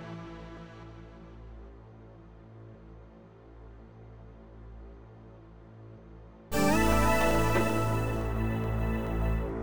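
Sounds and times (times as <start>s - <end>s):
music loop: 6.5s - 9.5s.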